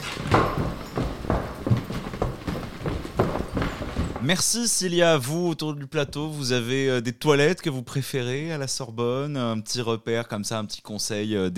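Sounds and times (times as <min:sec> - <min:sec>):
running footsteps: 0:00.0 - 0:04.6
speech: 0:04.3 - 0:11.5.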